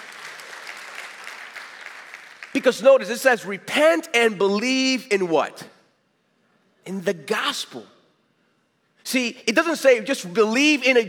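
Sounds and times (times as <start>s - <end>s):
audience clapping: 0.0s - 3.0s
speech: 2.6s - 5.7s, 6.8s - 8.0s, 9.1s - 11.0s.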